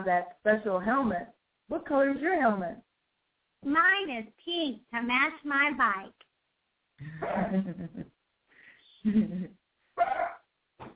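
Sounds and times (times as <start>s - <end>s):
speech: 0.0s - 2.9s, 3.6s - 6.2s, 7.0s - 8.1s, 9.0s - 10.3s
dog barking: 10.0s - 10.4s.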